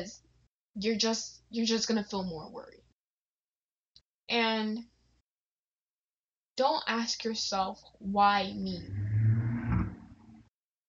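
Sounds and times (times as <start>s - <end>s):
speech: 0.8s - 2.8s, 4.3s - 4.9s, 6.6s - 9.1s
motorcycle passing by: 8.7s - 10.5s.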